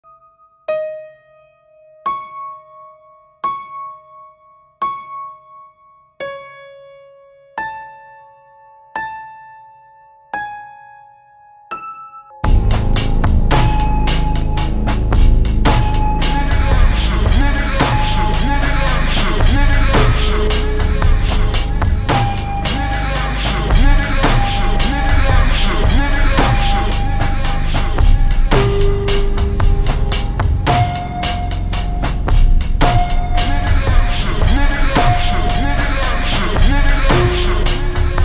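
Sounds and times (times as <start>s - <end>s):
ultra slowed reverb music: 12.4s - 38.2s.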